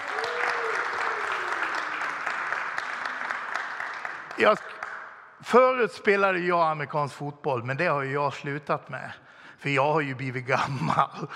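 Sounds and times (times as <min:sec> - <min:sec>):
audience applause: 0:00.0 - 0:05.2
speech: 0:04.4 - 0:04.8, 0:05.5 - 0:11.3.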